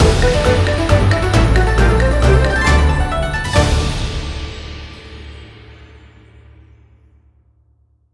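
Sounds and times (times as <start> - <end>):
big win ending jingle: 0.0 - 5.7.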